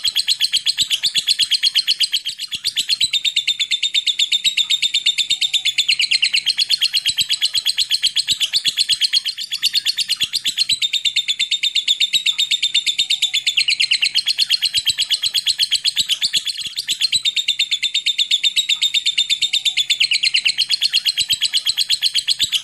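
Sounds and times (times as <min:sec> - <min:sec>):
lovebird long chattering call: 0:00.0 - 0:22.6.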